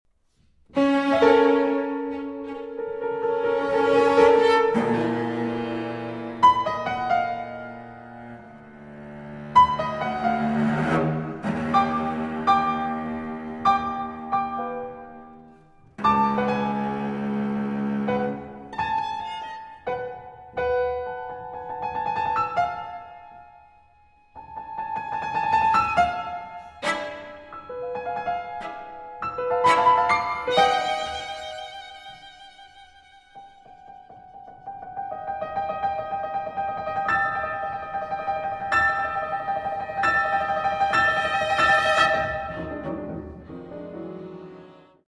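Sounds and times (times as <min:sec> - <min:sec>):
piano quartet: 0:00.6 - 0:45.0.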